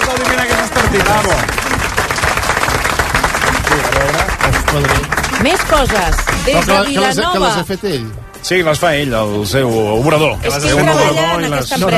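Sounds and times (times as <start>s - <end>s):
audience applause: 0.0s - 7.4s
speech: 4.8s - 11.9s.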